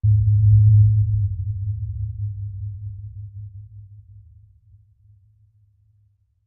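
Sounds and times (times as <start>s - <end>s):
tonal bass impact: 0.0s - 4.1s.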